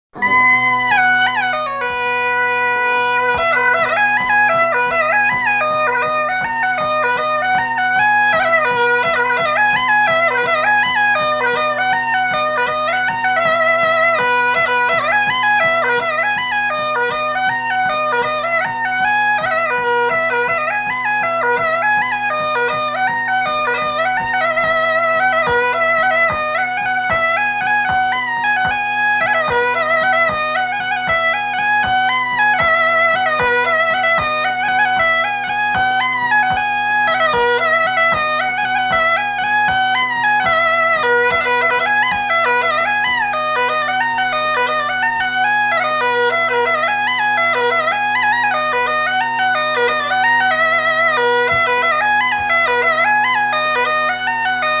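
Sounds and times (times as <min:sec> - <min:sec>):
mazurka: 0:00.2 - 0:54.7.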